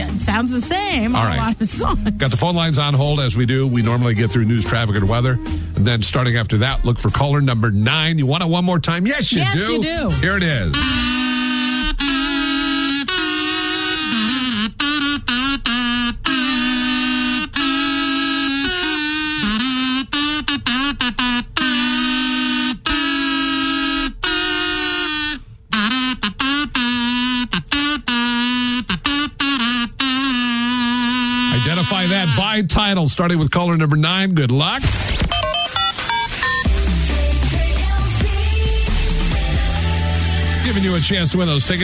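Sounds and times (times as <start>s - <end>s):
song played on a kazoo: 0.0s - 8.2s, 9.2s - 33.0s, 35.3s - 41.8s
speech: 0.2s - 11.1s, 32.2s - 35.3s, 40.7s - 41.8s.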